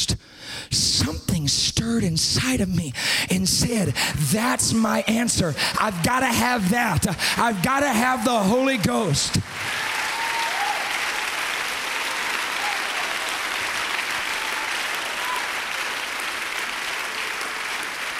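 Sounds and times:
speech: 0:01.4 - 0:09.7
audience standing and clapping: 0:04.3 - 0:18.1.

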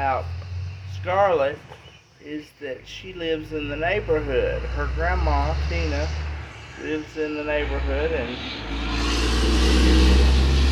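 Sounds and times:
speech: 0:00.0 - 0:00.4, 0:01.0 - 0:06.2, 0:06.8 - 0:10.0
truck passing through a neighborhood: 0:00.0 - 0:02.1, 0:02.7 - 0:10.7.

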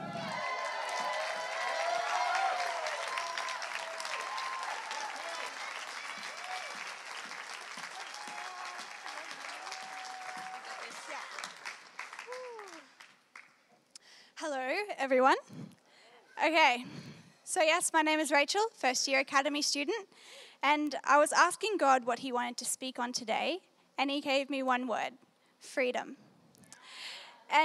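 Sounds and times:
audience applauding to welcome a speaker: 0:00.0 - 0:13.6
speech: 0:15.0 - 0:15.6, 0:16.4 - 0:26.2.

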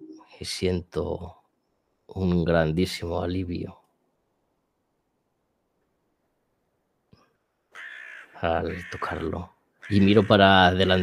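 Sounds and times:
speech: 0:00.4 - 0:01.4, 0:02.1 - 0:03.8, 0:08.4 - 0:11.0
crow cawing: 0:07.7 - 0:11.0.

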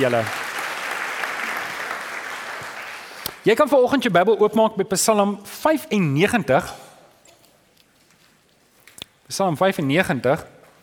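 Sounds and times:
speech: 0:00.0 - 0:00.4, 0:03.4 - 0:06.8, 0:09.3 - 0:10.5
audience applause: 0:00.0 - 0:03.1.

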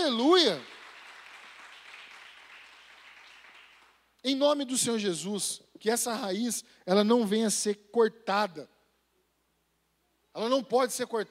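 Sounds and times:
speech: 0:00.1 - 0:00.7, 0:04.2 - 0:08.7, 0:10.4 - 0:11.3
audience applause: 0:00.3 - 0:04.0.

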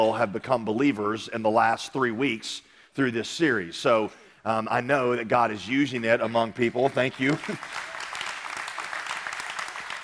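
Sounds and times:
speech: 0:00.0 - 0:07.9
audience clapping: 0:05.8 - 0:10.0.

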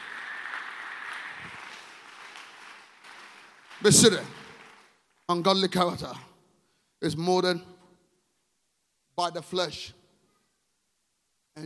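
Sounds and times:
audience clapping: 0:00.0 - 0:05.4
speech: 0:03.8 - 0:04.4, 0:05.3 - 0:06.3, 0:07.0 - 0:07.7, 0:09.2 - 0:10.0.

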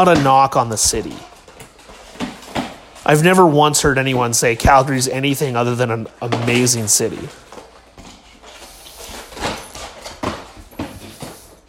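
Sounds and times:
speech: 0:00.0 - 0:01.3, 0:03.1 - 0:07.5
toy dragged across the floor: 0:08.3 - 0:09.7.

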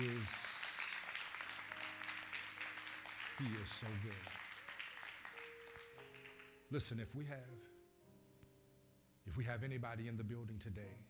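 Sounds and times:
speech: 0:00.0 - 0:00.4, 0:03.4 - 0:04.4, 0:06.7 - 0:07.7, 0:09.3 - 0:11.0
congregation hand clapping in praise during a church service: 0:00.0 - 0:07.0.

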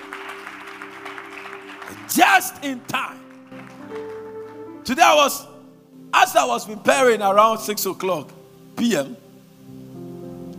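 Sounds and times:
audience clapping: 0:00.0 - 0:04.8
speech: 0:02.0 - 0:03.3, 0:04.8 - 0:05.5, 0:06.1 - 0:09.2.

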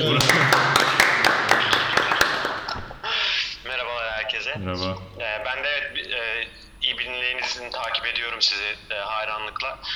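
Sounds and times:
clapping for a guest: 0:00.0 - 0:05.6
laughter: 0:00.0 - 0:09.9
speech: 0:05.5 - 0:09.9.

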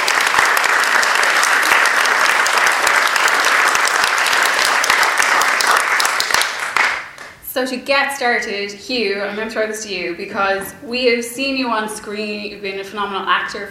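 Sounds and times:
audience applause: 0:00.0 - 0:07.3
speech: 0:07.6 - 0:13.6.

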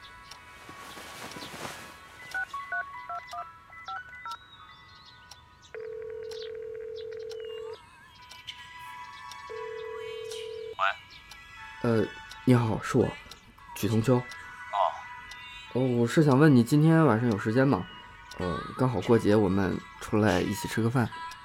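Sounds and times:
brief rustle: 0:00.6 - 0:02.4
electronic telephone keypad beeps dialing a number: 0:02.3 - 0:04.4, 0:05.8 - 0:07.8, 0:09.5 - 0:10.8
long steady low telephone ringback tones: 0:05.8 - 0:07.8, 0:09.5 - 0:10.8
speech: 0:11.9 - 0:13.2, 0:13.8 - 0:14.4, 0:15.8 - 0:21.2.

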